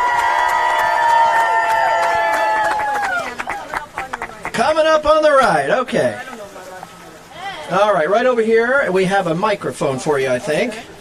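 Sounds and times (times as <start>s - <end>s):
audience applause: 0.0s - 4.7s
speech: 4.6s - 6.3s, 7.7s - 10.9s.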